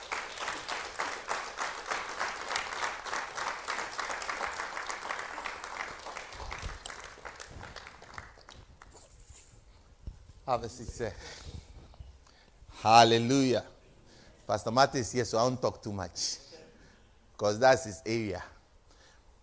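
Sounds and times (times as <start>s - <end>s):
audience clapping welcoming a pastor: 0.0s - 9.2s
speech: 10.5s - 11.6s, 12.8s - 13.7s, 14.5s - 16.4s, 17.4s - 18.5s.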